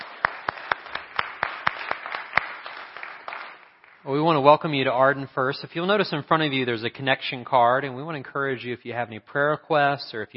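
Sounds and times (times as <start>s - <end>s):
church congregation clapping for its worship team and choir: 0.0s - 4.3s
speech: 4.0s - 10.3s.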